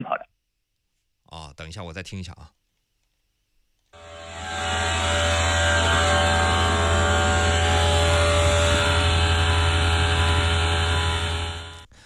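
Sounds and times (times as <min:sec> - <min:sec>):
speech: 0:01.4 - 0:02.6
car radiator cooling fan at full power: 0:04.0 - 0:11.9.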